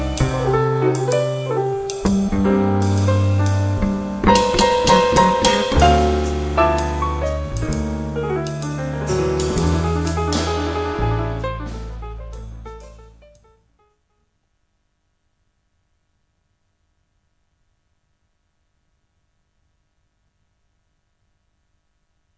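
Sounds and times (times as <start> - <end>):
keys playing: 0.0 - 12.1.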